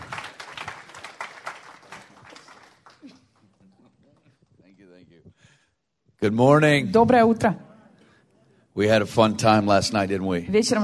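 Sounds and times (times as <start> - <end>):
audience applause welcoming a speaker: 0.0 - 4.5
speech: 6.2 - 7.6, 8.8 - 10.8.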